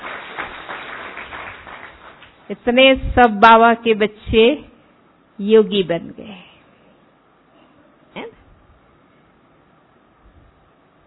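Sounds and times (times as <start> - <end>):
faint audience clapping at a yoga gathering: 0.0 - 2.5
speech: 2.5 - 4.7, 5.4 - 6.5.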